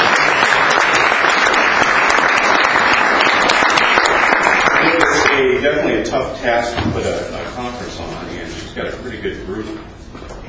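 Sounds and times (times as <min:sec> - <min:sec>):
audience applause: 0:00.0 - 0:05.6
speech: 0:06.1 - 0:07.4.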